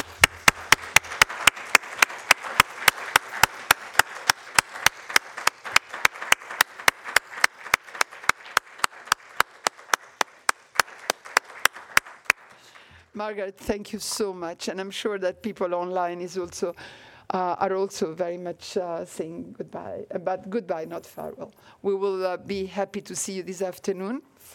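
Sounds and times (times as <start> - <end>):
audience applause: 0.0 - 12.9
speech: 13.2 - 24.5.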